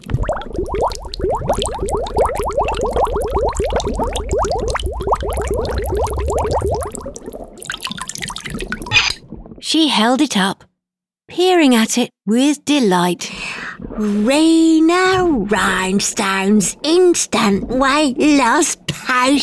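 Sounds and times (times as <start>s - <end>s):
glass bottle dipped and filled with liquid: 0.0s - 9.6s
speech: 9.9s - 10.6s, 11.4s - 13.3s, 14.0s - 19.4s.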